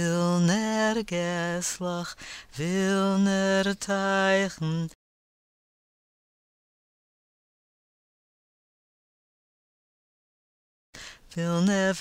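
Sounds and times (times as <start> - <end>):
tenor singing verses and refrain: 0.0 - 5.0, 11.3 - 11.9.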